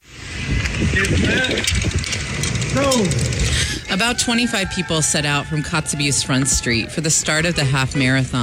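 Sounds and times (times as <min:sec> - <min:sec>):
wind roaring: 0:00.0 - 0:08.4
bicycle gears and chain rattling while riding: 0:00.7 - 0:06.3
speech: 0:01.0 - 0:02.0, 0:02.8 - 0:08.4.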